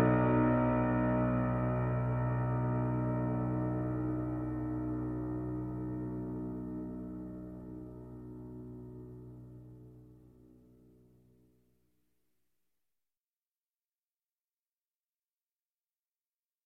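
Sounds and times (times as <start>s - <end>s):
piano: 0.0s - 11.1s.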